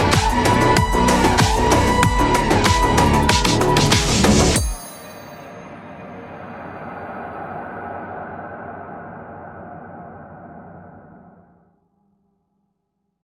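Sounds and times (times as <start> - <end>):
trailer background music mix: 0.0 - 8.0.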